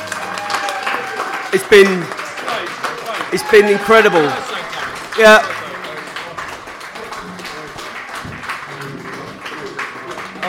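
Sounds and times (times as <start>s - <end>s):
crowd cheering and whooping: 0.0s - 1.6s, 3.2s - 4.8s
audience applause: 0.0s - 10.4s
speech: 1.5s - 2.2s, 3.3s - 4.5s, 5.2s - 5.6s.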